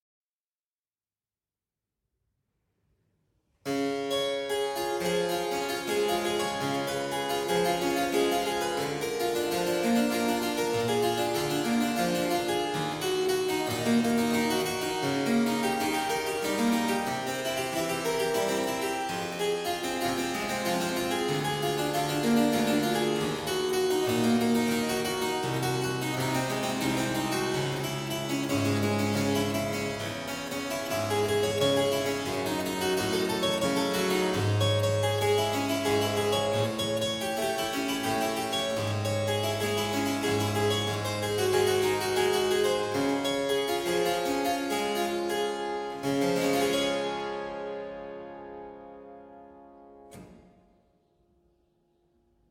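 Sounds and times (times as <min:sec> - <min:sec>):
harpsichord sonata arpeggio: 0:03.7 - 0:50.0.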